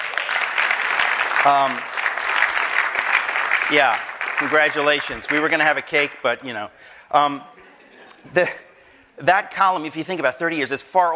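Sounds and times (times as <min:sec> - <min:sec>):
audience applause: 0:00.0 - 0:06.3
speech: 0:01.4 - 0:01.9, 0:03.7 - 0:07.6, 0:08.2 - 0:08.6, 0:09.2 - 0:11.1
laughter: 0:07.2 - 0:08.8.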